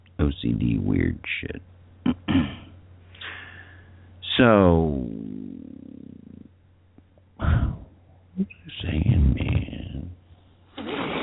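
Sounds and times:
speech: 0.2 - 2.5, 4.4 - 5.2, 8.4 - 9.6
domestic cat purring: 5.0 - 6.5.

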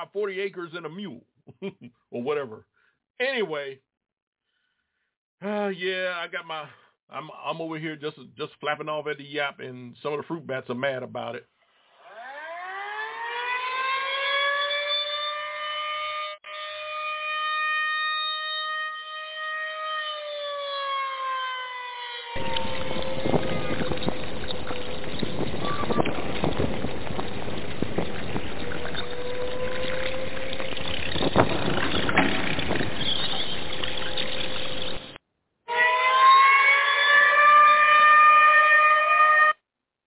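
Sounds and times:
speech: 0.0 - 3.9, 5.4 - 11.5
siren alarm sound effect wailing: 11.9 - 31.5, 35.7 - 39.6
rushing roar: 22.4 - 34.8.

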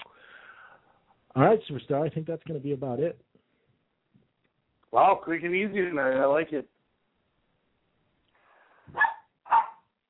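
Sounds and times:
speech: 1.3 - 3.3, 4.9 - 6.7
dog barking: 8.9 - 9.9.

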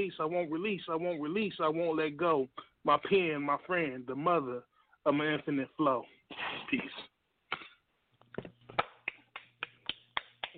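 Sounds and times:
speech: 0.0 - 7.1
finger snaps: 8.8 - 10.5.

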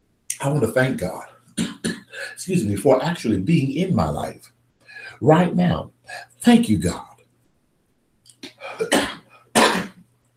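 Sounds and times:
speech: 0.4 - 1.3, 2.4 - 4.5, 5.1 - 7.1
cough: 1.6 - 2.4, 8.7 - 10.0.

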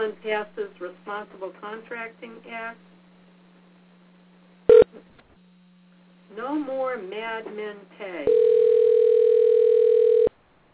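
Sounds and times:
speech: 0.0 - 3.0, 6.3 - 8.8
cell phone dial tone: 8.3 - 10.3.

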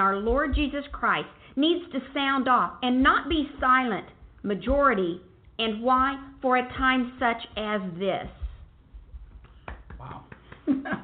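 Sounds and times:
speech: 0.0 - 8.4, 10.0 - 11.0
tiny soft hand claps: 9.3 - 11.0.

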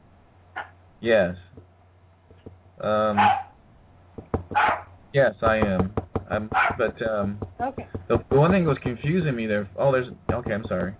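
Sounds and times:
speech: 1.0 - 1.4, 2.8 - 3.4, 4.5 - 10.9
dog barking: 3.1 - 3.6, 4.5 - 4.9, 6.5 - 6.9.

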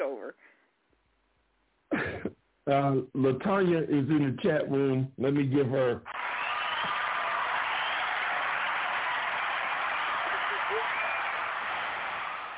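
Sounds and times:
speech: 2.7 - 6.2
crowd applauding: 6.1 - 12.5.

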